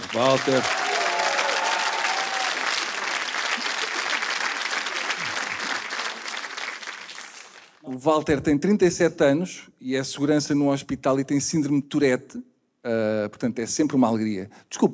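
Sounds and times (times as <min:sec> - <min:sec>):
audience applause: 0:00.0 - 0:07.8
speech: 0:00.1 - 0:00.9, 0:08.0 - 0:14.9.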